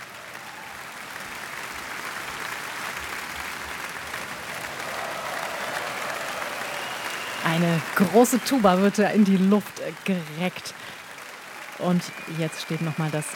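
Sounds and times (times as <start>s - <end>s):
concert audience applause: 0.0s - 13.3s
speech: 7.5s - 10.9s, 11.8s - 13.3s.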